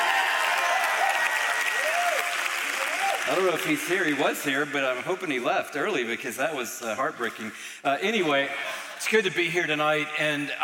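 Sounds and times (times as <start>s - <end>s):
scattered clapping: 0.0s - 5.2s
speech: 3.3s - 10.6s.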